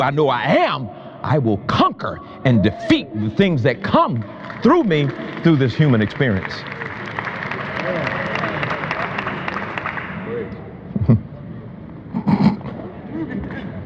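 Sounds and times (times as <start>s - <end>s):
speech: 0.0s - 6.8s
audience clapping: 3.4s - 10.3s.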